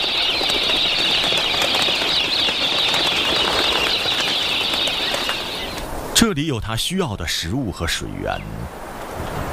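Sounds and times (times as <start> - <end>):
galah cockatoos flapping wings: 0.0 - 5.9
harsh scratchy galah cockatoo calls: 0.0 - 8.8
speech: 6.3 - 9.4.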